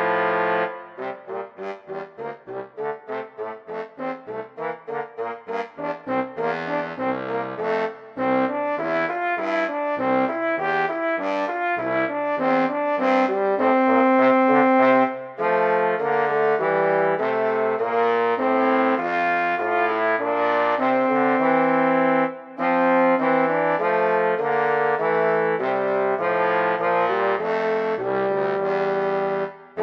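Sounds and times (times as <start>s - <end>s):
brass instruments playing: 0.0s - 29.8s.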